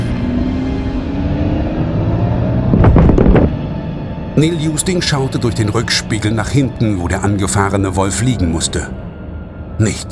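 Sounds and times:
car engine running: 0.0s - 4.4s
speech: 4.4s - 9.0s, 9.8s - 10.0s.

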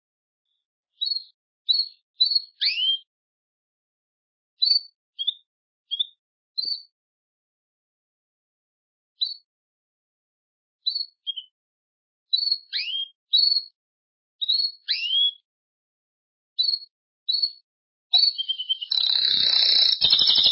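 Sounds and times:
Belgian canary chirping: 0.9s - 3.1s, 4.6s - 6.9s, 9.2s - 9.4s, 10.8s - 11.6s, 12.3s - 13.8s, 14.4s - 15.4s, 16.6s - 20.5s.

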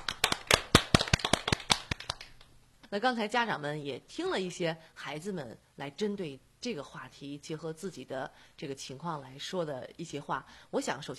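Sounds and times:
small studio audience clapping on a radio program: 0.0s - 2.5s
speech: 2.9s - 11.1s.

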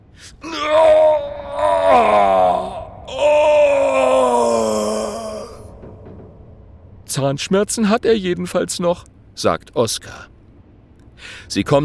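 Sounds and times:
bloodcurdling wailing scream echoing off cave walls: 0.4s - 5.9s
speech: 7.2s - 10.3s, 11.2s - 11.8s.

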